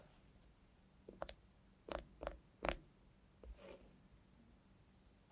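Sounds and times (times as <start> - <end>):
sharp clicks and taps by a robot hand: 1.1 - 2.9.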